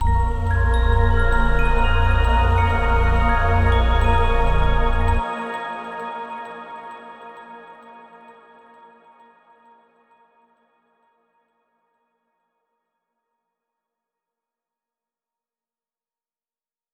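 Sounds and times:
bass choir: 0:00.0 - 0:05.8
chimes: 0:00.0 - 0:08.4.

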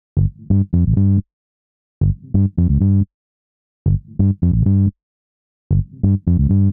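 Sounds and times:
bass loop: 0:00.2 - 0:01.2, 0:02.0 - 0:03.1, 0:03.9 - 0:04.9, 0:05.7 - 0:06.7.

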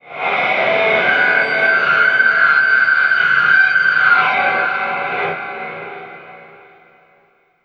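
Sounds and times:
guitar feedback squall: 0:00.0 - 0:06.9.

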